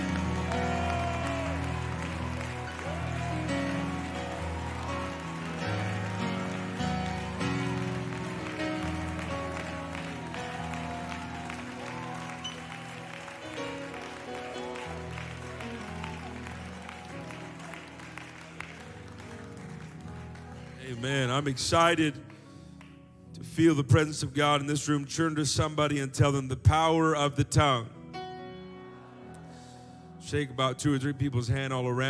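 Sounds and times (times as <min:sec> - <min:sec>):
large crowd clapping hands: 0:00.0 - 0:23.0
speech: 0:20.9 - 0:22.3, 0:23.6 - 0:28.0, 0:30.3 - 0:32.0.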